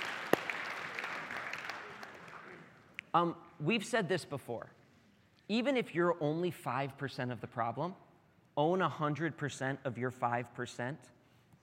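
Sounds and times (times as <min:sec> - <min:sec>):
sharp loud clap: 0:00.0 - 0:02.6
audience applauding: 0:00.0 - 0:02.8
speech: 0:03.1 - 0:04.8, 0:05.5 - 0:08.0, 0:08.6 - 0:11.2.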